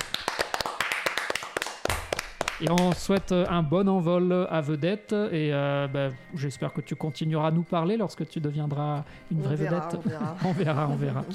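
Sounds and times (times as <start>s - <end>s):
small group of people applauding in a studio: 0.0s - 3.6s
speech: 2.6s - 11.3s
laughter: 9.6s - 11.3s.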